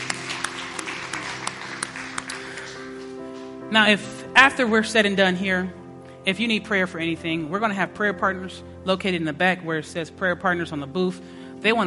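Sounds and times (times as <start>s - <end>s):
audience hand clap: 0.0s - 3.2s
speech: 3.7s - 11.8s.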